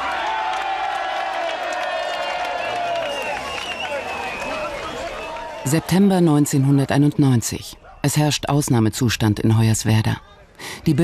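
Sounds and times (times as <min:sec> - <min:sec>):
people applauding: 0:00.0 - 0:06.7
speech: 0:05.6 - 0:11.0.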